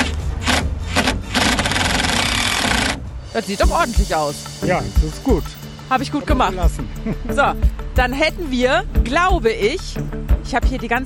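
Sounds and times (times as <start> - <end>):
cordless screwdriver driving in the last screws: 0.4 - 3.0
speech: 3.4 - 11.0.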